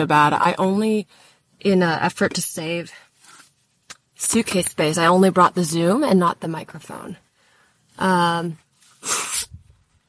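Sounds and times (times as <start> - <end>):
speech: 0.0 - 3.0, 4.2 - 7.2, 8.0 - 9.2
nose blowing into microphone: 9.0 - 9.7.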